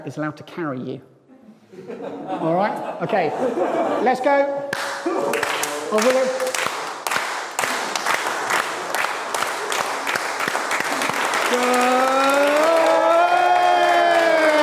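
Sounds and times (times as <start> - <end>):
speech: 0.0 - 1.1, 1.7 - 6.5, 11.5 - 12.0
laughter: 1.6 - 6.0
audience applause and cheering: 4.8 - 14.6.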